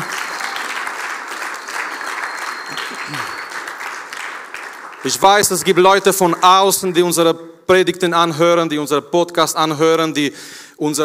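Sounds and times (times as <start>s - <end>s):
audience applause: 0.0s - 5.7s
speech: 5.0s - 11.0s.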